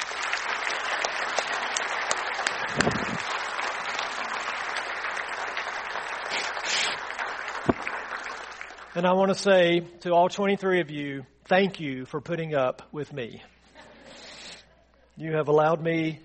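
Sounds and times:
audience applause: 0.0 - 9.0
speech: 2.8 - 3.4, 9.0 - 13.5, 15.2 - 16.2.

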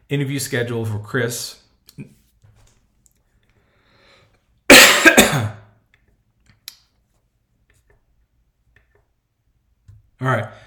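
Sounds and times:
speech: 0.1 - 2.2
person clearing throat: 4.7 - 5.7
person coughing: 4.7 - 5.7.

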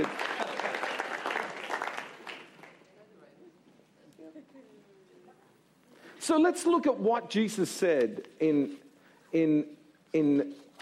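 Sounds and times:
speech: 0.0 - 0.2, 6.3 - 10.7
audience applause: 0.0 - 2.8.

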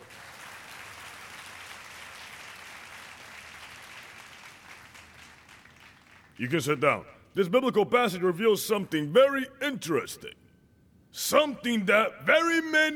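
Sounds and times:
crowd applauding: 0.0 - 6.4
speech: 6.4 - 10.4, 11.1 - 12.9.

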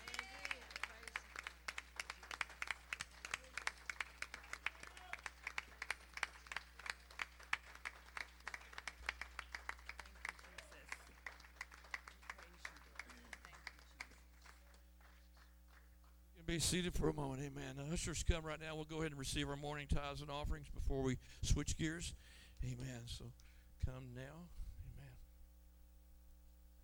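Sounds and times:
audience hand clapping: 0.0 - 16.5
speech: 16.5 - 24.6.

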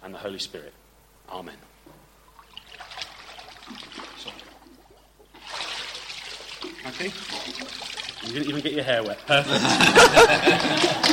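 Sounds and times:
speech: 0.2 - 1.8, 6.8 - 11.1
water splashing in a pool during a baptism: 2.3 - 9.4
laughter: 9.3 - 11.1.

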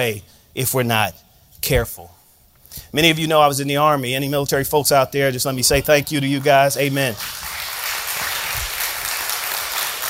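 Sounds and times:
speech: 0.0 - 7.6
audience applause: 7.2 - 10.0.

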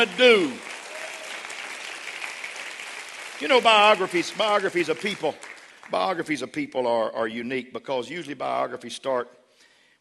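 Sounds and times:
speech: 0.0 - 0.6, 3.4 - 9.4
audience clapping hands: 0.0 - 6.4.

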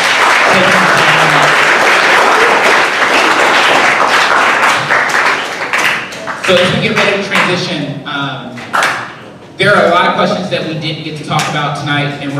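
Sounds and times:
audience applause: 0.0 - 7.2
speech: 6.5 - 7.9, 9.6 - 12.3.

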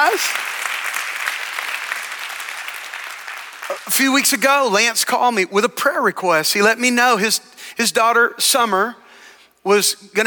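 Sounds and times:
church audience applause welcoming visiting pastors: 0.0 - 4.4
speech: 0.1 - 0.5, 3.9 - 9.0, 9.6 - 10.2.

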